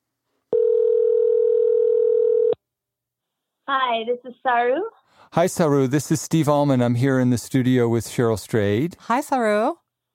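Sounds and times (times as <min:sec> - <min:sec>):
telephone dial tone: 0:00.5 - 0:02.6
speech: 0:03.7 - 0:09.8.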